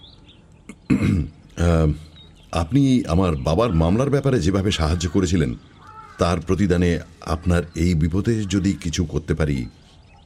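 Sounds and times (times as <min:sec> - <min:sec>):
man clearing throat: 0:00.7 - 0:01.4
speech: 0:00.9 - 0:09.8.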